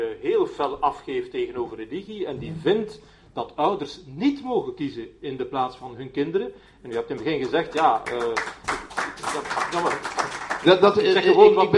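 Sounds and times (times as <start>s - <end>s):
speech: 0.0s - 11.7s
audience applause: 7.8s - 11.2s.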